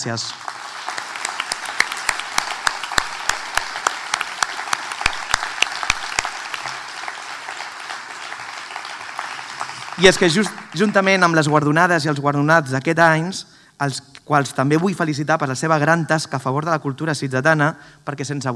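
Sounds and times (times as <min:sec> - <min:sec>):
speech: 0:00.0 - 0:00.6, 0:10.0 - 0:18.5
audience applause: 0:00.4 - 0:11.3.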